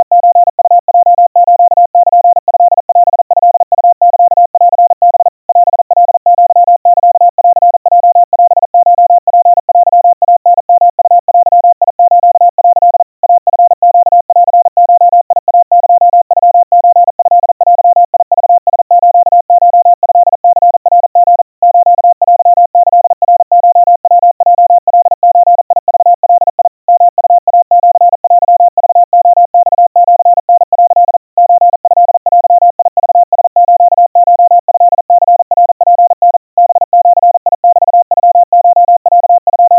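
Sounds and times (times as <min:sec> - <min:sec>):
crispy Morse code tones at 700 Hz, 150 cpm: 0:00.0 - 0:39.7.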